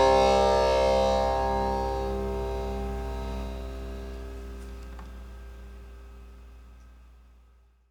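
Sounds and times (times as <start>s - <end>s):
personal tambura playing slowly: 0.0s - 4.8s.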